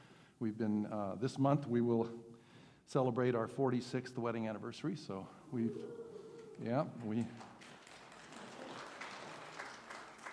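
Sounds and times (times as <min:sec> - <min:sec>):
speech: 0:00.4 - 0:02.3, 0:02.9 - 0:07.5
audience applause: 0:06.4 - 0:10.3.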